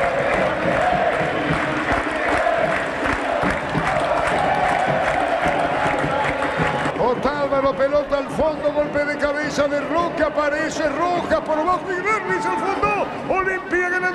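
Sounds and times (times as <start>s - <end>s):
stadium crowd cheering a goal: 0.0s - 14.1s
speech: 10.4s - 14.1s.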